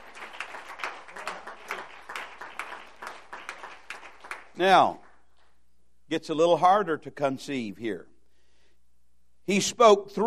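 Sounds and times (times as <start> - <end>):
audience hand clapping: 0.0 - 5.6
speech: 4.6 - 5.0, 6.1 - 8.1, 9.5 - 10.2.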